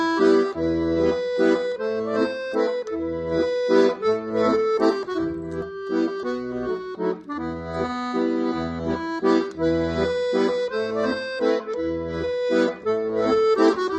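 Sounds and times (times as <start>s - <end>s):
accordion: 0.0s - 13.9s.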